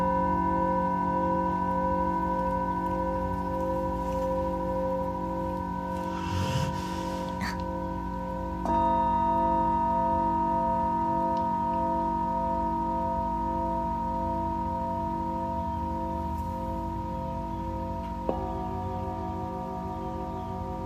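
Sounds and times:
singing bowls for sound healing ringing: 0.0s - 20.8s
soft rustle: 3.6s - 4.9s.

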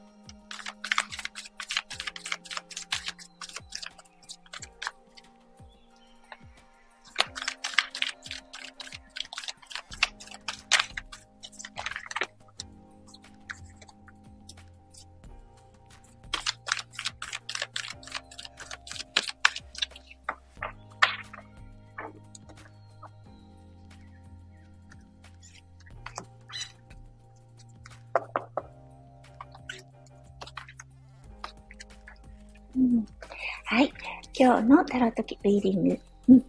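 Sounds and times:
soft music: 0.0s - 36.4s
tarot cards being shuffled: 0.3s - 5.3s, 7.0s - 15.1s, 15.9s - 23.2s, 25.3s - 26.8s, 27.7s - 28.7s, 29.3s - 32.2s
speech: 34.4s - 36.4s.

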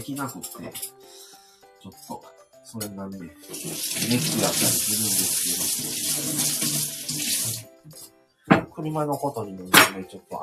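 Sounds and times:
speech: 0.0s - 10.4s
tap water running while washing dishes: 3.4s - 7.7s.

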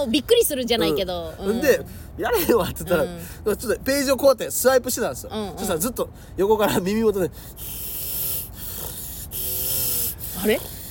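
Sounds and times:
speech: 0.0s - 7.8s, 10.4s - 10.8s
voice imitating heavy rough nasal breathing: 7.3s - 10.8s.

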